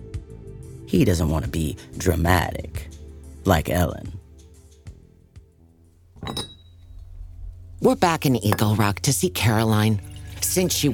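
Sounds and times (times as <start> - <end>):
speech: 0.9 - 4.2, 6.2 - 6.4, 7.8 - 10.9
teacup clinking against its saucer: 6.2 - 7.0.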